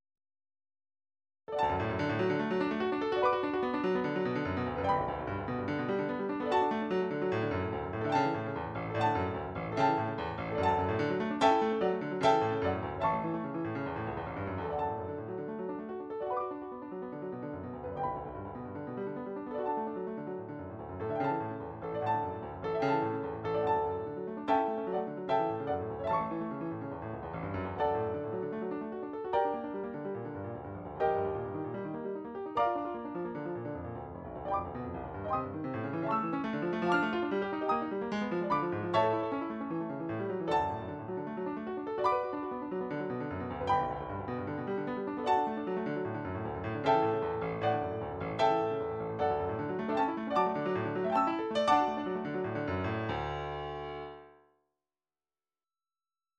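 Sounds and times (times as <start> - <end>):
midi piano studies: 1.5 - 54.4.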